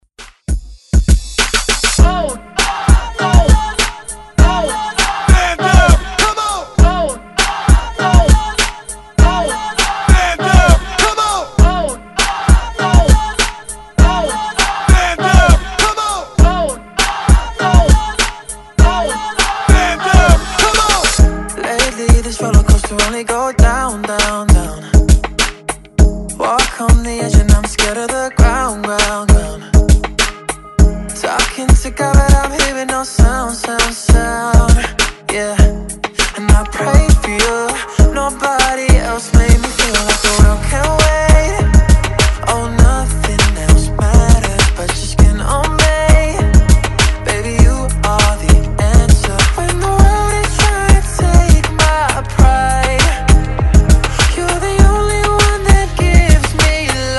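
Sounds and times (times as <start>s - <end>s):
Redrum drum machine beat: 0.2s - 57.1s.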